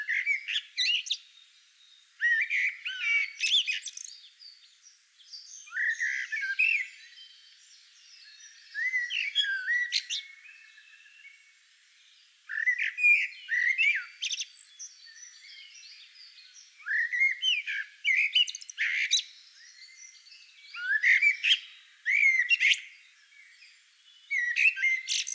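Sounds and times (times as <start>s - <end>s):
Eurasian blackbird singing: 0.0s - 11.4s, 12.0s - 25.3s.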